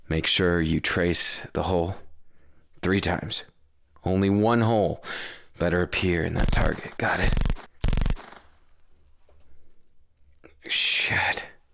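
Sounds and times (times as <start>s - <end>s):
speech: 0.1s - 2.0s, 2.8s - 7.5s, 10.7s - 11.5s
gunshot fired at a target: 6.4s - 8.5s.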